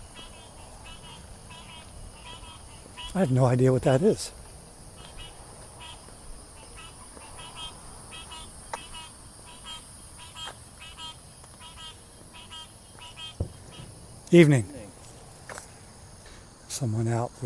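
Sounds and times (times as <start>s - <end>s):
pulsing frog calls: 0.0s - 4.2s, 4.8s - 15.7s
night insects buzzing and trilling: 0.0s - 17.4s
speech: 3.1s - 4.4s, 14.3s - 14.8s, 16.8s - 17.4s.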